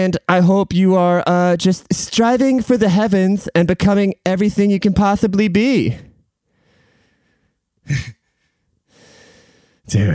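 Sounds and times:
speech: 0:00.0 - 0:06.1, 0:07.9 - 0:08.2, 0:09.9 - 0:10.1
heavy breathing from someone out of breath: 0:06.5 - 0:10.1.

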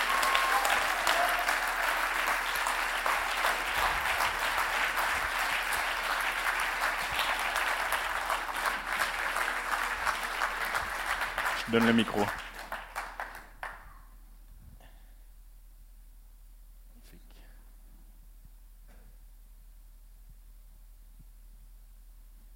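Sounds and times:
audience applause welcoming a speaker at a gathering: 0:00.0 - 0:14.0
speech: 0:11.7 - 0:12.4.

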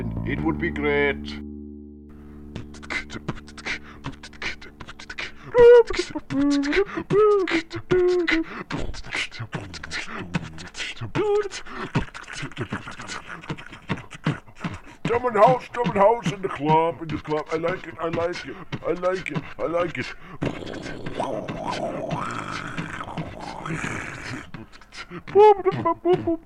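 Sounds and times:
speech: 0:00.3 - 0:01.4, 0:03.1 - 0:03.4, 0:05.5 - 0:13.9, 0:15.1 - 0:22.8, 0:23.7 - 0:24.1, 0:25.1 - 0:26.4
beatboxing: 0:02.6 - 0:26.4.

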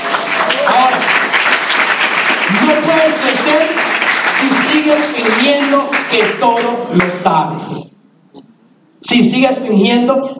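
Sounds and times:
crowd applauding: 0:00.0 - 0:07.3
speech: 0:04.4 - 0:07.9, 0:09.0 - 0:10.3.

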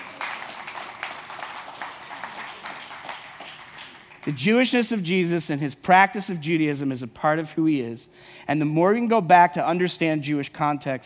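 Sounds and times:
audience clapping: 0:00.0 - 0:04.4
speech: 0:04.2 - 0:11.0.

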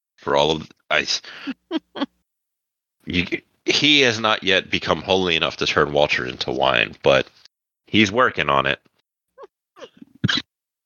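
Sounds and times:
speech: 0:00.2 - 0:02.2, 0:03.1 - 0:08.9, 0:09.8 - 0:10.4
person coughing: 0:09.8 - 0:10.5.

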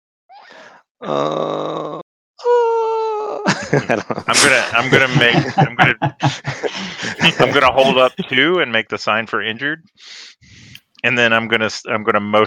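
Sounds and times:
speech: 0:01.0 - 0:01.5, 0:03.7 - 0:12.4
person moaning: 0:01.0 - 0:03.5, 0:06.8 - 0:08.2
laughter: 0:03.5 - 0:08.5.

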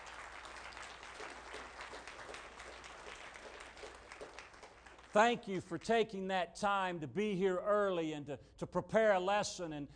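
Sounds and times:
round of applause: 0:00.0 - 0:06.0
speech: 0:05.2 - 0:09.9.

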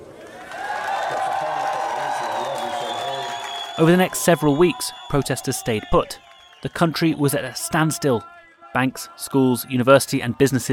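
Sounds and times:
crowd cheering in the streets of Lebanon: 0:00.0 - 0:10.7
whoops and whistles: 0:02.0 - 0:06.7
speech: 0:03.8 - 0:10.7.

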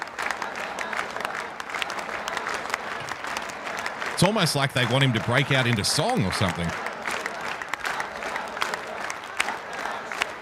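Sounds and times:
large crowd clapping a beat: 0:00.0 - 0:10.3
speech: 0:04.2 - 0:06.9.

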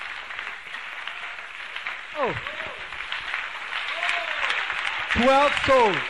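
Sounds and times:
audience applauding: 0:00.0 - 0:06.0
speech: 0:02.2 - 0:02.6, 0:05.2 - 0:06.0.

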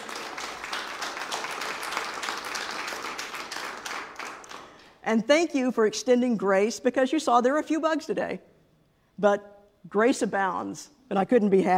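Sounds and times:
audience applause: 0:00.0 - 0:04.8
speech: 0:05.0 - 0:08.5, 0:09.2 - 0:11.7.

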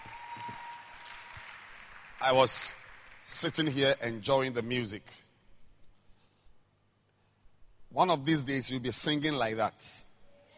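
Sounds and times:
audience clapping hands: 0:00.0 - 0:04.0
speech: 0:02.2 - 0:05.2, 0:07.9 - 0:10.1.

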